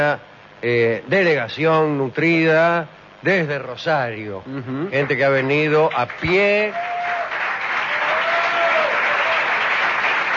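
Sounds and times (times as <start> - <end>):
speech: 0.0 - 7.0
small audience clapping: 5.0 - 10.3.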